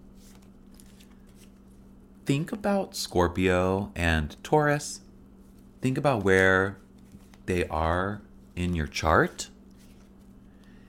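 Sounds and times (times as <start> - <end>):
tarot cards being shuffled: 0.1 - 1.9, 5.4 - 7.7, 8.6 - 10.8
speech: 2.3 - 5.0, 5.8 - 6.8, 7.5 - 9.5.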